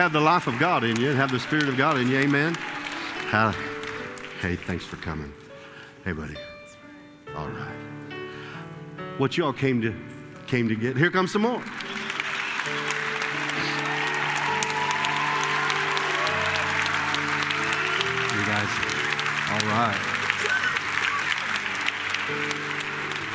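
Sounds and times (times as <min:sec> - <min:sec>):
speech: 0:00.0 - 0:02.7, 0:03.3 - 0:03.7, 0:04.4 - 0:05.4, 0:06.0 - 0:06.5, 0:09.2 - 0:11.8, 0:19.7 - 0:20.1
large audience clapping: 0:00.0 - 0:05.4, 0:11.3 - 0:23.3.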